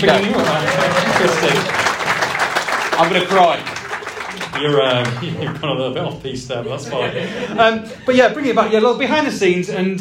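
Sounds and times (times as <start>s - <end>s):
laughter: 0.0s - 1.8s, 4.9s - 8.9s
speech: 0.0s - 1.9s, 3.0s - 3.8s, 4.4s - 9.9s
audience applause: 0.0s - 6.2s.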